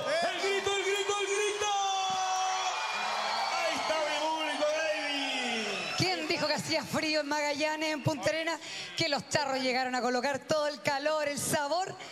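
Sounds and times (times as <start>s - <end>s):
audience applause: 0.0s - 6.6s
crowd cheering and whooping: 0.0s - 6.6s
speech: 6.8s - 12.1s.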